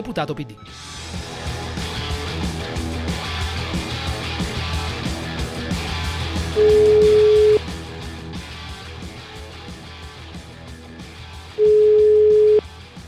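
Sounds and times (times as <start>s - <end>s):
continuous rhythmic music bed: 0.7s - 11.5s
telephone ringback tones of a call to an Italian parliamentary deputy: 6.6s - 7.6s, 11.6s - 12.6s.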